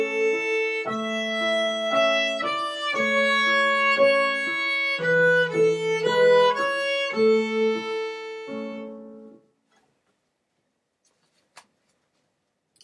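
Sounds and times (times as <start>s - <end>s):
strings playing a folk tune: 0.0s - 9.4s.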